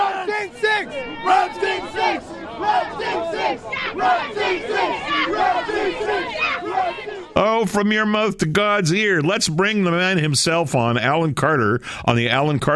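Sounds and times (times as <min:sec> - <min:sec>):
basketball fans cheering and yelling in arena: 0:00.0 - 0:07.4
speech: 0:07.4 - 0:12.7.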